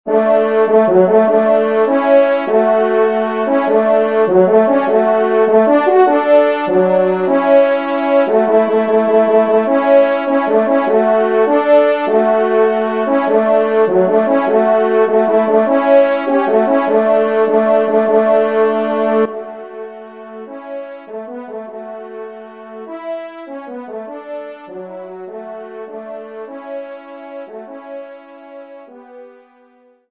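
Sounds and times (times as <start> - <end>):
horn playing: 0.1 - 29.6.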